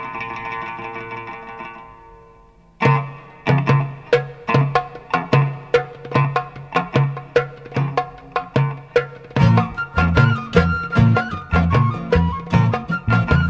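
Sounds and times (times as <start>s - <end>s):
debka oud folk dance music: 2.8s - 13.4s.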